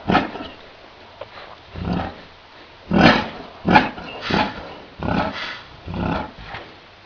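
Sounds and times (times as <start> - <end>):
yak giving gruff breathy grunts: 0.0 - 0.6, 1.7 - 6.7.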